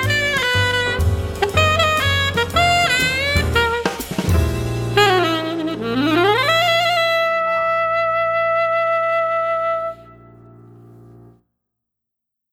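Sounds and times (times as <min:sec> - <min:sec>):
alto saxophone jazz solo: 0:00.0 - 0:11.3.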